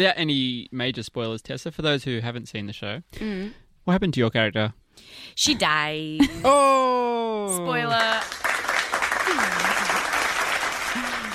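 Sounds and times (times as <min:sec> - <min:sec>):
speech: 0:00.0 - 0:08.5
crowd applause sound effect: 0:07.9 - 0:11.3.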